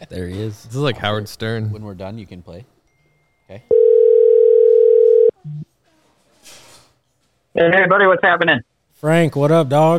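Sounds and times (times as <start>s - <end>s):
speech: 0.1s - 2.8s, 3.5s - 3.9s, 7.6s - 9.9s
telephone call ringing tone: 3.7s - 5.3s.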